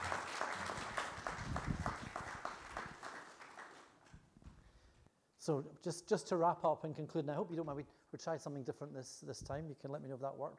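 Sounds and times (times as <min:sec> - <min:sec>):
audience applause: 0:00.0 - 0:04.0
speech: 0:05.5 - 0:10.5.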